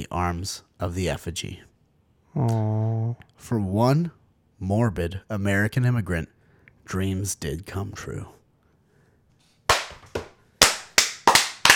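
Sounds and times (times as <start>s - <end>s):
speech: 0.0s - 1.7s, 2.4s - 8.4s
people clapping: 9.7s - 11.7s.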